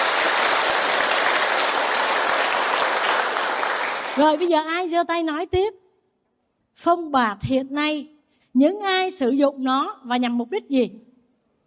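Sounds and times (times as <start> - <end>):
audience applause at a temple Dharma talk: 0.0 - 4.5
speech: 4.2 - 5.8, 6.8 - 11.1.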